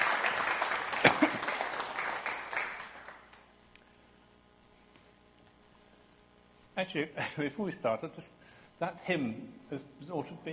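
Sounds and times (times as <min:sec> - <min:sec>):
crowd clapping: 0:00.0 - 0:03.5
speech: 0:06.8 - 0:10.5.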